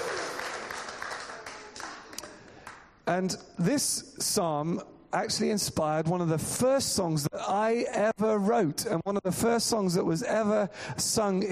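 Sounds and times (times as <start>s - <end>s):
audience clapping: 0.0s - 2.9s
speech: 3.1s - 11.5s.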